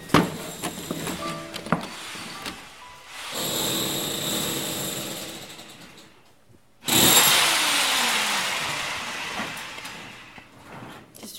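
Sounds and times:
power drill boring into a wall: 0:00.3 - 0:06.1, 0:06.8 - 0:10.7.

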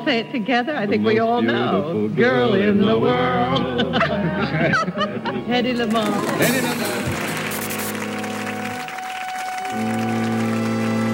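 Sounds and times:
speech: 0:00.0 - 0:07.2
sustained low musical tones: 0:00.0 - 0:11.1
laughter: 0:03.5 - 0:07.5
studio audience applause from 1957 TV show: 0:05.7 - 0:11.1.

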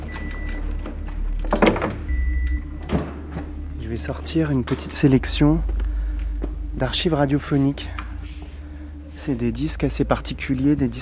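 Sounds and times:
mobile archive shelving in a warehouse rolling open by hand wheel: 0:00.0 - 0:10.9
speech: 0:03.9 - 0:05.8, 0:06.8 - 0:08.0, 0:09.2 - 0:10.9.

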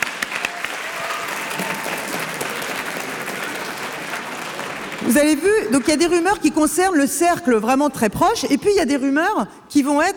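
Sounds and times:
audience applauding: 0:00.0 - 0:06.3
speech: 0:05.2 - 0:10.1.

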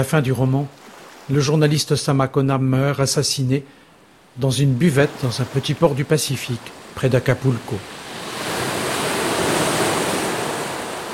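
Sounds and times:
speech: 0:00.0 - 0:03.8, 0:04.4 - 0:08.0
sea waves roaring at the foot of a cliff: 0:03.8 - 0:11.1.

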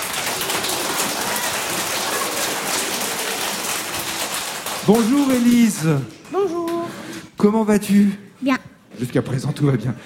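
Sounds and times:
audience applause: 0:00.0 - 0:06.8
speech: 0:04.9 - 0:10.0.

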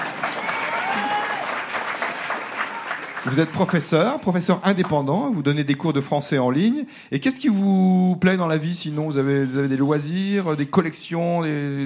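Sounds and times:
audience applause: 0:00.0 - 0:04.2
speech: 0:03.2 - 0:11.8.

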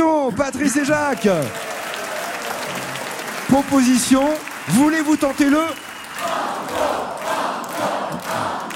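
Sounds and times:
large studio audience cheering on quiz contestants: 0:00.0 - 0:08.5
speech: 0:00.3 - 0:01.7, 0:03.5 - 0:07.2.

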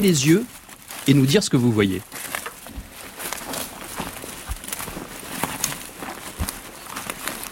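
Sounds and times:
speech: 0:00.0 - 0:02.3
dry leaves crunching underfoot: 0:00.0 - 0:07.5.

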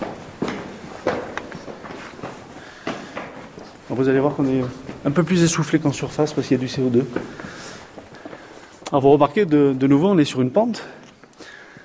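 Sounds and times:
footsteps climbing stairs: 0:00.0 - 0:10.1
speech: 0:03.9 - 0:07.5, 0:08.9 - 0:11.0.

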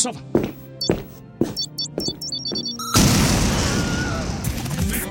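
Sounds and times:
speech: 0:00.0 - 0:01.6
comedy-sketch time bomb exploding: 0:03.0 - 0:04.9.

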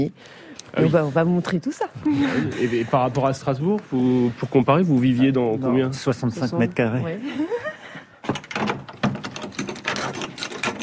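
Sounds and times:
speech: 0:00.0 - 0:07.8
laughter: 0:02.0 - 0:03.1, 0:07.2 - 0:08.2
key turning in a house door lock: 0:08.3 - 0:10.8.

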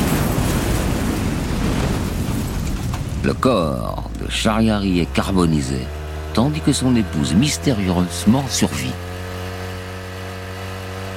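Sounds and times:
car bomb exploding: 0:00.0 - 0:04.2
speech: 0:03.2 - 0:09.1.

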